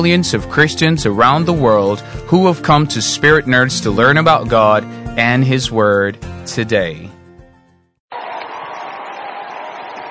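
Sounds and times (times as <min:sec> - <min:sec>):
speech: 0:00.0 - 0:07.1
audience clapping: 0:08.1 - 0:10.1.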